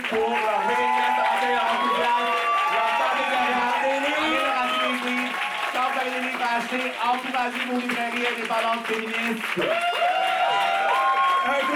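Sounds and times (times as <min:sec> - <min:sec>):
shouting and whooping voices: 0:00.0 - 0:06.4, 0:09.6 - 0:11.7
live audience applauding and cheering: 0:00.0 - 0:11.7
speech: 0:00.1 - 0:00.9, 0:06.7 - 0:10.1.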